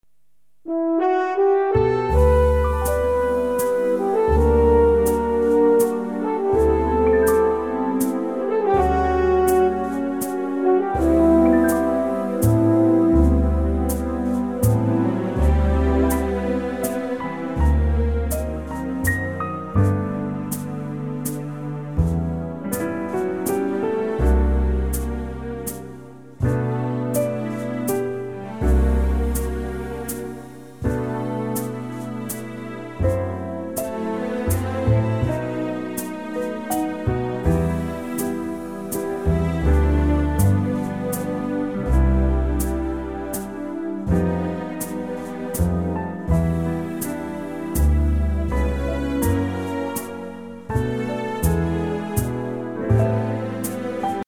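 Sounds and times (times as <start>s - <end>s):
waltz backing track in G for male vocals: 0.7s - 54.2s.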